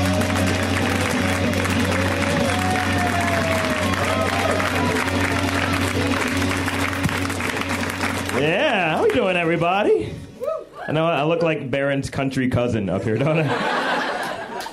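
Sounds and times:
audience round of applause: 0.0 - 9.5
speech: 10.9 - 14.0
laughter: 13.1 - 14.7.

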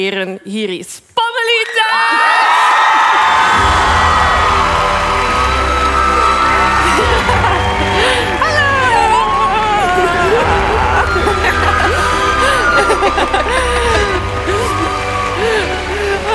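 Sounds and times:
speech: 0.0 - 2.4
audience applause: 2.2 - 16.3
laughter: 2.4 - 16.3.

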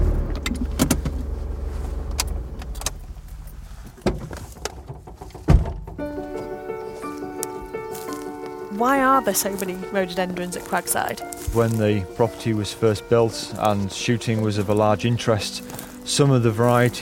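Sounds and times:
car engine on a garden drive at Cragside: 0.0 - 6.4
louder thunk: 4.0 - 6.1
knocks: 4.0 - 6.4
speech: 8.8 - 17.0.

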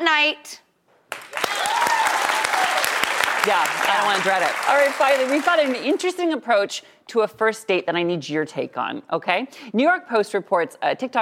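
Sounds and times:
speech: 0.2 - 0.6, 3.4 - 11.2
studio audience clapping hands: 1.1 - 6.1.

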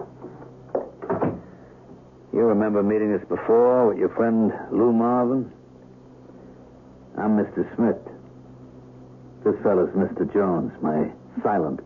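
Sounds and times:
dull hissy noise: 0.0 - 11.8
apartment door shutting and latching: 0.8 - 1.5
speech: 2.4 - 5.6, 7.2 - 8.1, 9.5 - 11.8.

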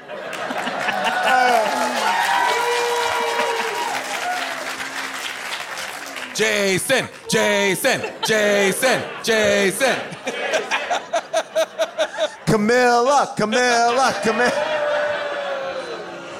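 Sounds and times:
crowd clapping: 0.0 - 10.9
laughter: 0.0 - 16.3
crowd whooping and cheering: 0.4 - 11.3, 13.8 - 16.3
speech: 6.4 - 11.1, 12.5 - 14.5.

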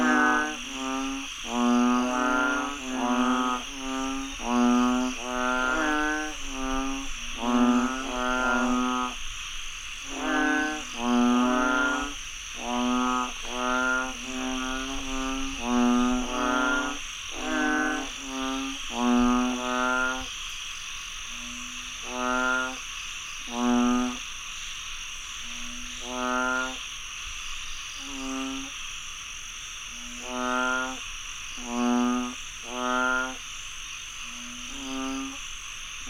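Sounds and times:
frog chorus: 0.0 - 36.0
insect buzzing: 0.0 - 36.0.

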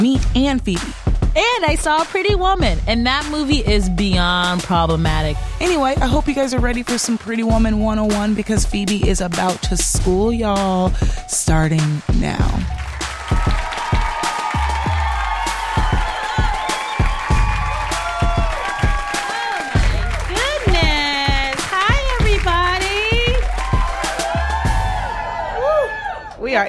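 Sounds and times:
speech: 0.0 - 13.8
live audience clapping: 12.6 - 26.4
loud whoops and cheers: 12.8 - 21.7, 22.8 - 26.6.

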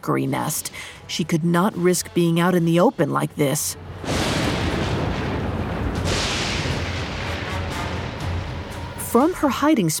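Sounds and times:
speech: 0.0 - 4.2, 9.2 - 9.9
lightning bolt striking the ground: 3.8 - 9.1
heavy low rumble: 3.8 - 9.4.

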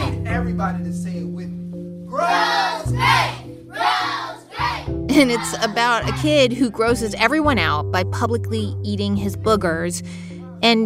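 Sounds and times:
speech: 0.4 - 2.7, 5.2 - 10.8
crowd cheering: 2.2 - 6.2.

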